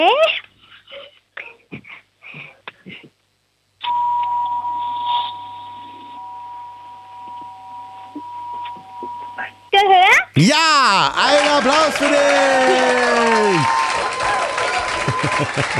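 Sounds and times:
speech: 0.0 - 0.2, 10.4 - 13.8, 15.4 - 15.7
doorbell ringing: 3.8 - 9.8, 13.6 - 15.7
laughter: 10.4 - 15.7.

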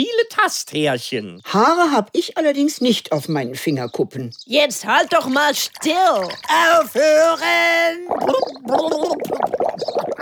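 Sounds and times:
speech: 0.0 - 10.1
person gurgling and choking underwater: 7.9 - 10.1.

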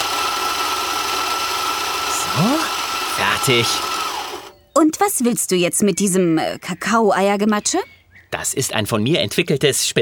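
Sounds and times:
electric kitchen mixer running: 0.0 - 4.6
speech: 3.4 - 3.9, 4.8 - 10.0.

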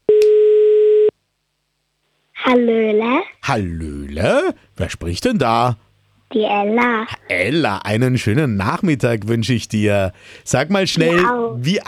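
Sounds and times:
telephone ringing tone after a number is dialed: 0.1 - 1.1
speech: 2.5 - 11.8.

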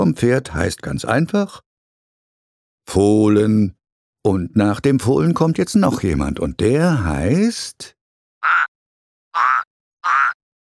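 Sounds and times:
speech: 0.0 - 1.7, 2.9 - 8.6
frog croaking: 8.4 - 10.4.

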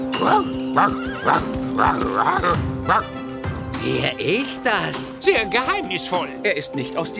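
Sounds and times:
horse neighing: 0.2 - 3.1
speech: 0.8 - 3.2, 3.8 - 7.1.

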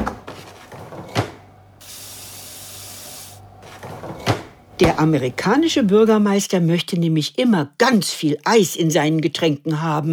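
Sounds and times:
tap water filling ice cube trays: 1.8 - 3.5
speech: 4.8 - 10.1.

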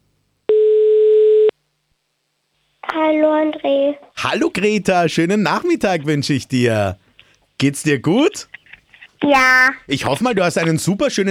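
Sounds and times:
telephone line tone after dialing a number: 0.5 - 1.5
speech: 3.1 - 7.0, 7.6 - 8.6, 9.2 - 11.2.

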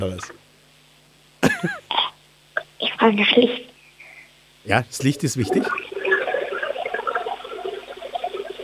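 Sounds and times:
speech: 0.0 - 0.4, 3.0 - 3.7, 4.6 - 6.0
toilet flushing: 5.2 - 8.6.

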